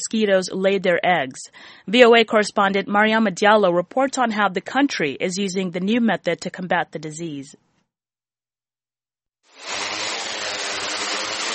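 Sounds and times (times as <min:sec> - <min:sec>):
speech: 0:00.1 - 0:07.6
spraying drone flying: 0:09.6 - 0:11.5.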